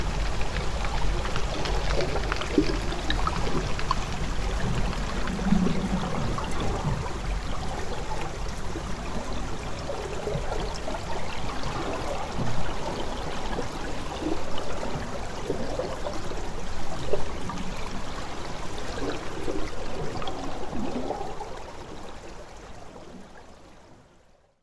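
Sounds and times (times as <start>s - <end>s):
flowing water: 0.0s - 24.4s.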